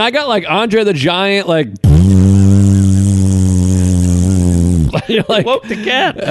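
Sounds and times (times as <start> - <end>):
speech: 0.0 - 1.9, 4.9 - 6.2
voice imitating a loud fart with a buzzy raspberry: 1.8 - 5.0
laughter: 2.2 - 3.1, 3.8 - 6.2.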